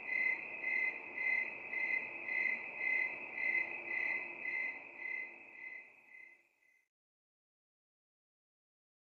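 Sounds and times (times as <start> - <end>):
crickets chirping at night: 0.0 - 6.9.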